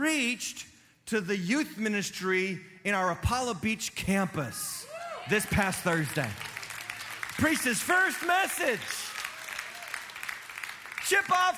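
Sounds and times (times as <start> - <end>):
speech: 0.0 - 6.5, 7.4 - 9.0, 11.1 - 11.5
audience clapping: 5.3 - 11.5.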